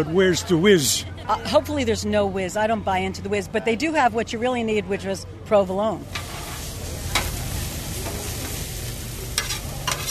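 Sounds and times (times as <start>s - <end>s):
speech: 0.0s - 6.3s
cheesesteak meat sizzling on a griddle: 6.0s - 10.0s
metal spatula chopping and scraping meat: 9.4s - 10.0s.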